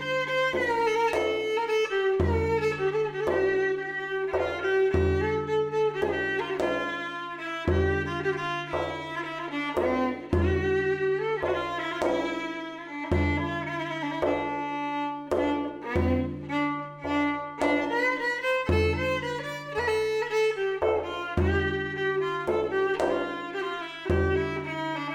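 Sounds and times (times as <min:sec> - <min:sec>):
Hüseyni saz semâî instrumental piece: 0:00.0 - 0:25.1.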